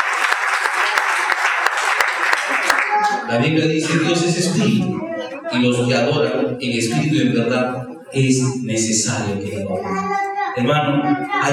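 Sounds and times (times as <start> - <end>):
congregation clapping during a church service: 0.0 - 4.5
speech: 3.3 - 11.5.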